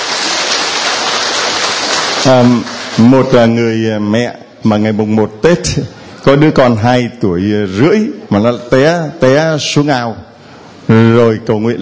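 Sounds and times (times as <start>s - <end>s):
big round of applause: 0.0s - 3.4s
speech: 2.2s - 10.3s, 10.9s - 11.8s.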